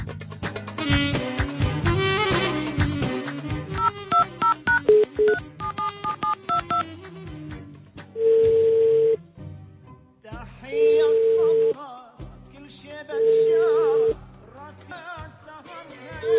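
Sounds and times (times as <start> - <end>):
dense music: 0.0 - 16.3
DTMF keypad tones from a telephone being dialed: 3.8 - 6.8, 8.2 - 9.2
telephone ringback tones: 3.8 - 6.8, 8.2 - 9.2, 13.2 - 14.1.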